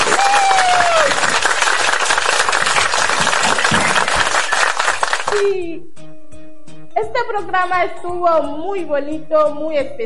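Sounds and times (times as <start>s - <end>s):
audience applause: 0.0s - 5.5s
speech: 5.4s - 5.9s, 7.1s - 10.0s.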